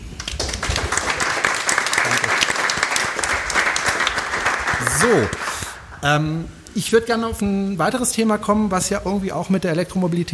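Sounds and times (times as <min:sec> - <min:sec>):
applause: 0:00.0 - 0:06.0
speech: 0:05.0 - 0:05.4, 0:06.0 - 0:10.3.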